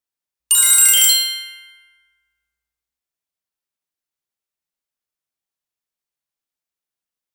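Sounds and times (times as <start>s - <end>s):
twinkle sound: 0.5s - 2.0s.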